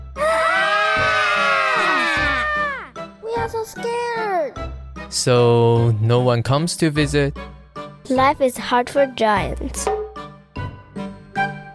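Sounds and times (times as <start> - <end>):
people screaming while running away: 0.2 - 2.9
speech: 3.6 - 10.0.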